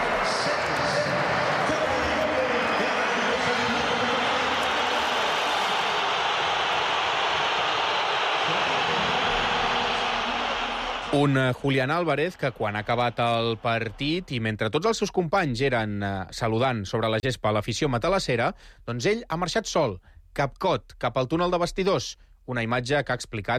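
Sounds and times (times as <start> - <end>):
stadium crowd booing: 0.0 - 14.4
speech: 11.2 - 23.5.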